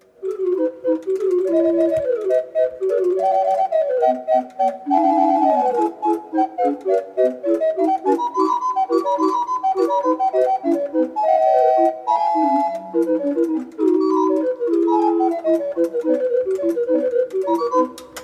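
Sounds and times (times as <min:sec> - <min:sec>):
mechanical organ clock playing an allegro: 0:00.0 - 0:18.2.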